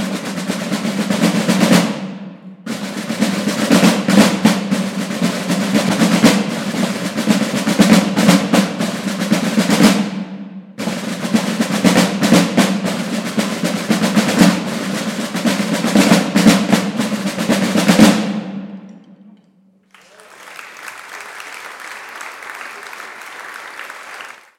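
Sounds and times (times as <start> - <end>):
silver drum: 0.0 - 19.4.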